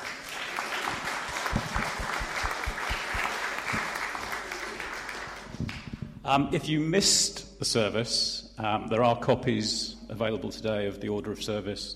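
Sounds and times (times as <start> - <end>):
round of applause: 0.0 - 6.1
speech: 6.3 - 11.9.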